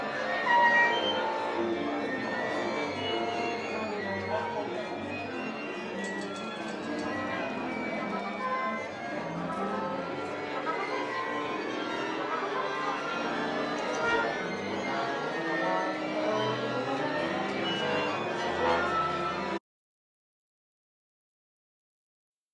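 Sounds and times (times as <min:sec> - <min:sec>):
orchestra tuning and warming up: 0:00.0 - 0:19.6.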